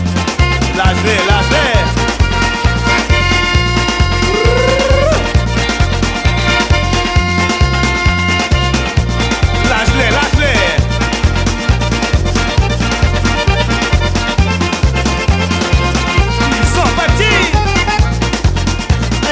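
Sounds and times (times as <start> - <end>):
blues music: 0.0 - 19.3.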